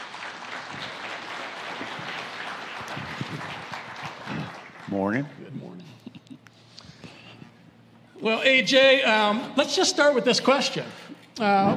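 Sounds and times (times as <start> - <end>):
audience applause at Valley Church welcoming a speaker: 0.0 - 5.4
speech: 4.9 - 6.0, 8.2 - 11.7.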